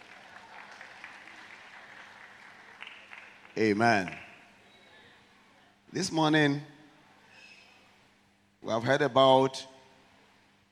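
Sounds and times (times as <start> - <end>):
audience clapping: 0.0 - 4.5
speech: 3.6 - 4.2, 5.9 - 6.7, 8.6 - 9.7.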